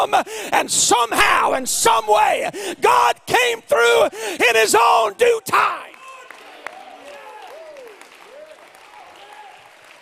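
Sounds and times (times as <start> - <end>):
speech: 0.0 - 5.9
audience clapping: 5.8 - 10.0.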